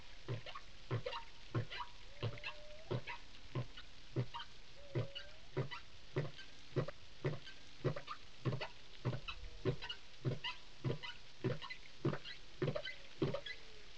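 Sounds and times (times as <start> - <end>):
whale clicking pulses: 0.3 - 13.6.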